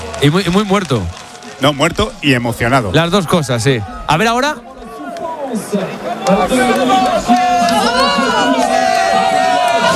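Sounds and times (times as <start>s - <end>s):
crowd cheering at the podium of a cycling race: 0.0s - 9.9s
speech: 0.2s - 4.7s, 5.5s - 9.2s.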